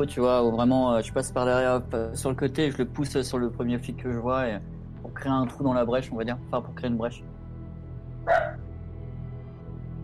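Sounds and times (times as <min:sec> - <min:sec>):
speech: 0:00.0 - 0:07.3
person imitating a dog bark: 0:08.3 - 0:08.6.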